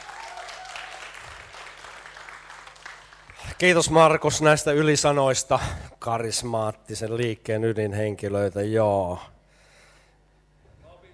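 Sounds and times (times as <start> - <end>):
audience at a talk on a religious movement clapping: 0.0 - 4.3
speech: 3.6 - 9.4.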